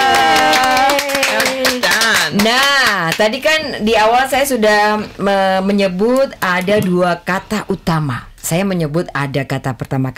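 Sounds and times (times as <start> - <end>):
audience clapping: 0.0 - 3.4
speech: 2.4 - 10.1.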